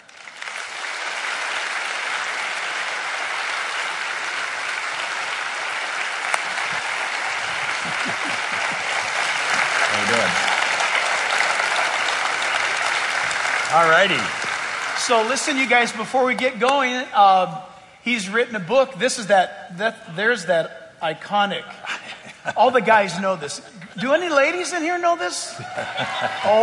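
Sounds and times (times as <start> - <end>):
large audience applause welcoming a guest: 0.0 - 16.3, 25.6 - 26.6
laughter: 6.2 - 10.7, 21.7 - 24.1, 25.5 - 26.6
speech: 13.8 - 21.8, 22.4 - 26.6.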